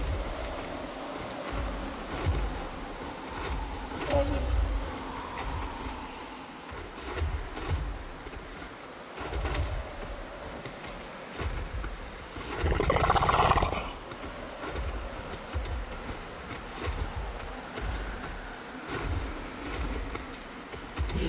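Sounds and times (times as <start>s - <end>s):
desert ambience: 0.0s - 21.2s.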